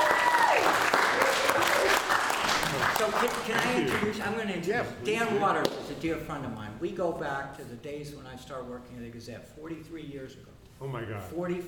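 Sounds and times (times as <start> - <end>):
audience applause welcoming a guest: 0.0 - 4.2
speech: 3.0 - 11.6.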